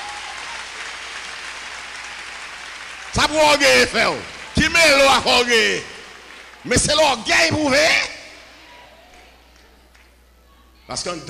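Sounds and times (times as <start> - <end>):
congregation clapping in praise of Jesus Christ: 0.0 - 8.1
speech: 3.1 - 5.9, 6.6 - 8.1, 10.9 - 11.2.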